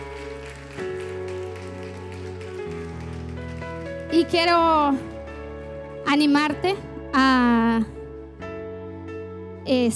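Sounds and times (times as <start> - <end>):
loud audience applause: 0.0 - 4.5
speech: 4.1 - 5.1, 6.1 - 8.0, 9.7 - 9.9.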